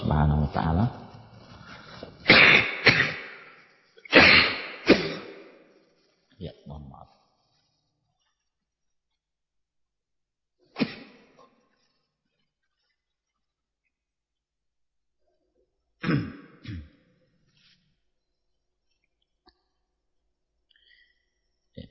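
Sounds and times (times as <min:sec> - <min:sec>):
speech: 0:00.2 - 0:01.0
person coughing during an Islamic lecture: 0:02.2 - 0:05.5, 0:10.8 - 0:11.4, 0:16.0 - 0:17.0.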